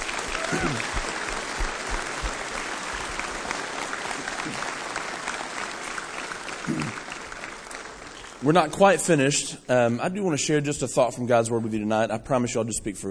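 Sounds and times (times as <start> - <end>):
audience applause for students: 0.0 - 9.0
speech: 0.5 - 1.0, 8.4 - 13.1.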